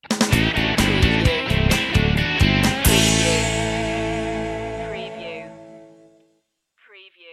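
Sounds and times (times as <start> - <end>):
blues rock sting: 0.0 - 6.2.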